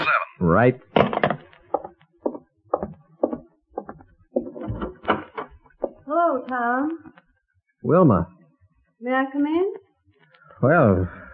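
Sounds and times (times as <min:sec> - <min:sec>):
speech: 0:00.4 - 0:01.0, 0:07.8 - 0:08.4, 0:09.0 - 0:09.8, 0:10.6 - 0:11.2
knocking on a wooden door: 0:01.0 - 0:05.0, 0:05.8 - 0:06.0.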